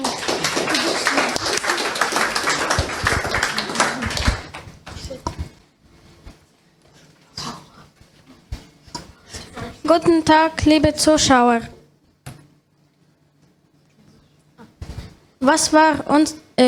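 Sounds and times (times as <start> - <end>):
audience applause: 0.0 - 4.7
speech: 9.9 - 11.8, 15.5 - 16.6.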